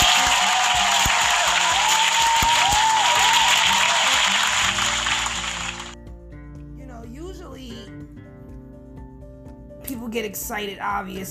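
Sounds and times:
applause: 0:00.0 - 0:06.0
speech: 0:10.2 - 0:11.2.

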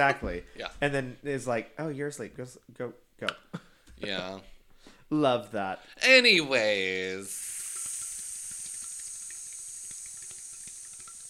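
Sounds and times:
speech: 0:00.0 - 0:07.6
voice hissing in imitation of falling rain: 0:07.2 - 0:11.2.

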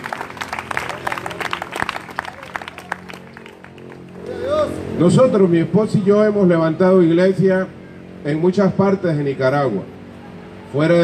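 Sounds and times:
audience applauding: 0:00.0 - 0:04.2
speech: 0:05.0 - 0:09.9, 0:10.7 - 0:11.0.

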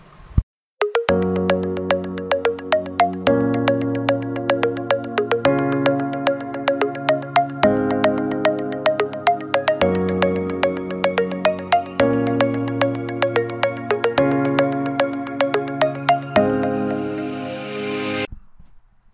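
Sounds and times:
podcast instrumental intro jingle: 0:00.8 - 0:18.3
rising cymbal-like wash: 0:16.3 - 0:18.3.

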